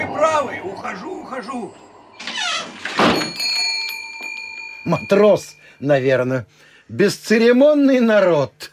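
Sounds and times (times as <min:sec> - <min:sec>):
steady tonal ringing: 0:00.0 - 0:06.2
speech: 0:00.4 - 0:01.9, 0:04.9 - 0:08.7
door hinge squealing: 0:02.1 - 0:03.6
door shutting thud: 0:02.2 - 0:03.4.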